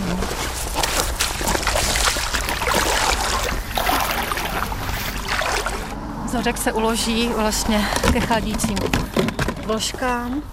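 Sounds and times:
someone wading in rubber boots into reservoir water: 0.0 - 6.0
speech: 6.3 - 10.5.

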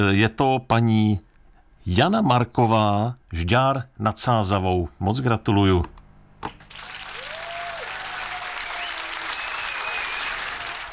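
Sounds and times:
speech: 0.0 - 6.7
applause: 6.6 - 10.9.

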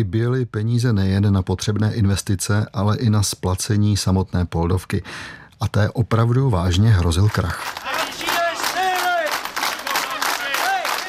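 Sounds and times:
speech: 0.0 - 8.1
scattered claps: 7.2 - 11.0
protesting workers' crowd chant: 7.8 - 11.0.

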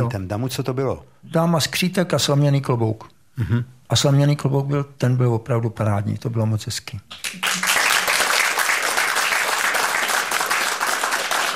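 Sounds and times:
speech: 0.0 - 7.6
audience applause: 7.2 - 11.5.

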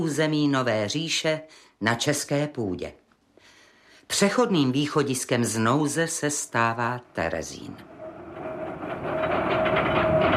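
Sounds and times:
speech: 0.0 - 3.0, 4.1 - 7.9
deportation transport train rolling along rails: 7.8 - 10.3.

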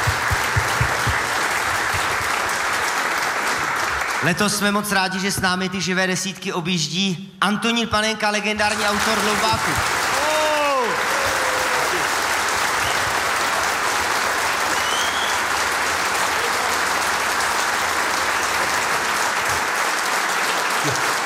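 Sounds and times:
sustained applause from a sizable audience: 0.0 - 4.9, 8.6 - 21.2
speech: 4.2 - 9.9
voices whooping: 10.0 - 12.1.

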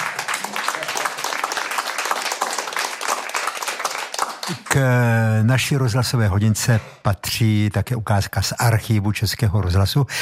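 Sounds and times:
applause: 0.0 - 5.1
speech: 4.5 - 10.2.

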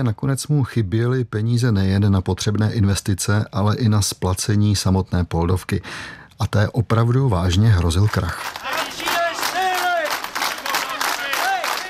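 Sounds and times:
speech: 0.0 - 8.8
people clapping: 7.7 - 11.8
people cheering: 8.0 - 11.8
workers chanting at a demonstration: 8.6 - 11.8.

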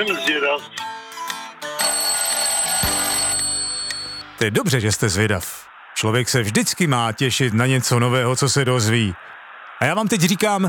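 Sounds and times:
speech: 0.0 - 0.9, 4.4 - 10.6
final quiz bell ringing: 1.8 - 4.3.

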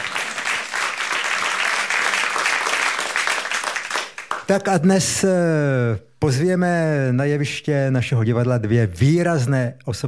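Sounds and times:
audience applause: 0.0 - 4.5
speech: 4.5 - 10.0.

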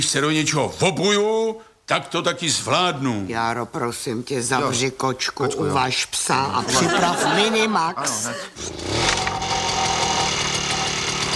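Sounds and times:
speech: 0.0 - 9.1
laughter: 6.6 - 8.6
small petrol engine starting and running: 8.6 - 11.3.

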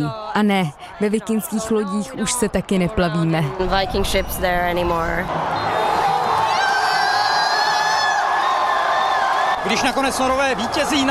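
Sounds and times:
speech: 0.0 - 5.7, 9.7 - 11.0
crowd of fans cheering in celebration: 5.2 - 11.0.

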